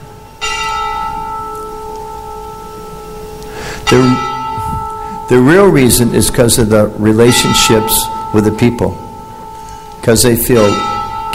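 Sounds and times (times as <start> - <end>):
church bell ringing: 0.0 - 11.3
speech: 3.9 - 4.3, 5.3 - 9.0, 10.0 - 11.3.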